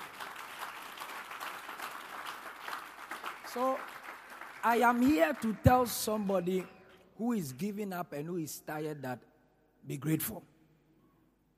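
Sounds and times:
audience clapping: 0.0s - 7.0s
speech: 3.6s - 3.9s, 4.6s - 10.5s.

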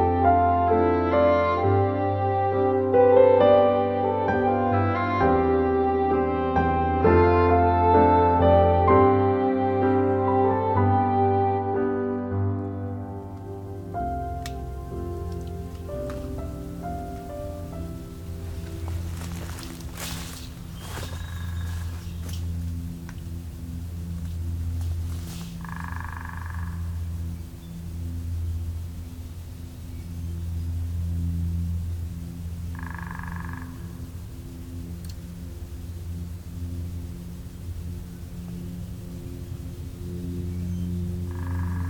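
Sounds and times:
low hum: 0.0s - 41.8s
frog chorus of low trilling croaks in a spring swamp: 13.2s - 41.8s.

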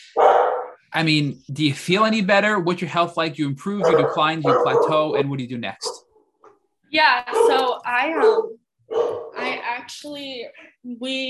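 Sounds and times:
dog giving a drawn-out bark or yelp: 0.1s - 0.8s, 3.8s - 6.6s, 7.3s - 9.5s
speech: 1.0s - 6.0s, 6.9s - 11.2s.

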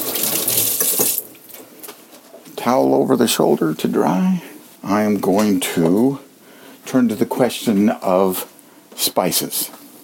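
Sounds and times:
tap water running over hands being washed: 0.0s - 1.6s
speech: 2.6s - 6.3s, 6.9s - 9.8s.

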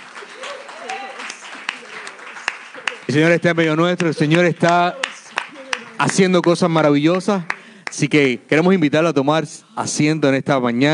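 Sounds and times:
audience applauding: 0.0s - 8.1s
speech: 3.1s - 5.0s, 6.0s - 10.9s.

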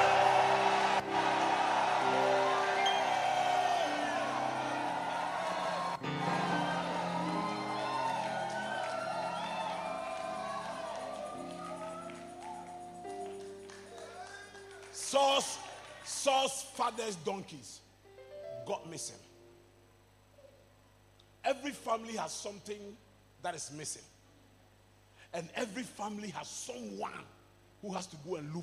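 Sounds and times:
audience shouting: 0.0s - 13.2s
speech: 16.4s - 17.8s, 18.7s - 19.3s, 21.7s - 24.2s, 25.3s - 28.6s.

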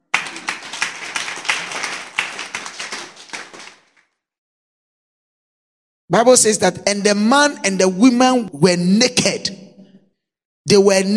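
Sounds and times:
audience clapping: 0.0s - 4.2s
speech: 6.1s - 9.6s, 10.7s - 11.1s.

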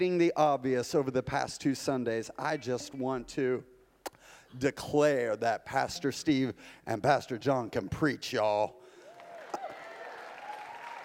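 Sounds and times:
speech: 0.0s - 3.7s, 4.5s - 8.8s
audience clapping: 9.0s - 11.0s.

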